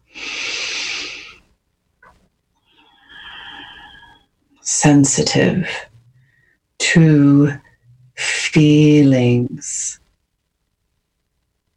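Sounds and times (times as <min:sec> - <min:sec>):
deep breath during a guided calming exercise: 0:00.0 - 0:01.5, 0:02.6 - 0:04.3, 0:05.8 - 0:06.7
speech: 0:04.8 - 0:05.9, 0:06.9 - 0:07.6, 0:08.5 - 0:10.0.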